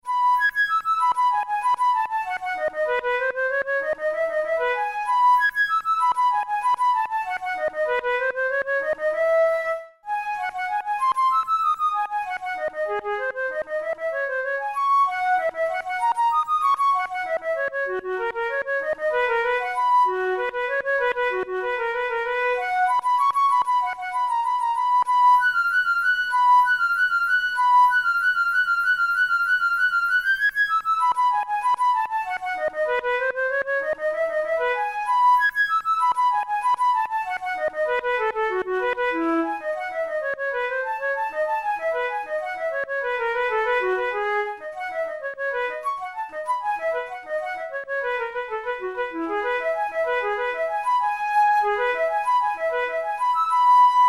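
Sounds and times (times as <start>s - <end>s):
flute study in E major: 0.0s - 54.0s.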